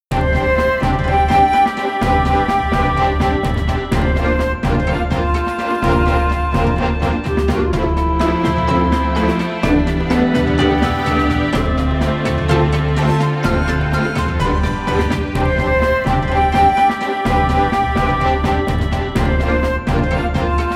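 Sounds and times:
result screen background music: 0.1 - 20.7.

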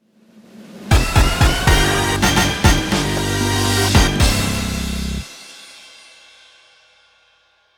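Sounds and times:
quiz over jingle: 0.9 - 5.4.

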